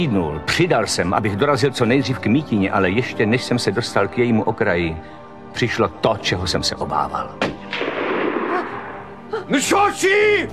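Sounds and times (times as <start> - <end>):
speech: 0.0 - 7.8, 9.3 - 10.5
rifle shot sound effect: 7.4 - 9.3.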